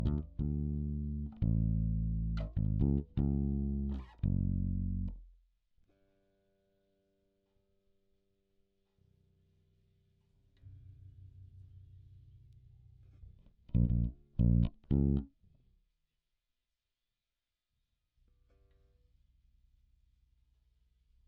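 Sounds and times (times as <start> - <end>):
bass guitar recorded by direct input: 0.0 - 5.3, 13.6 - 15.3.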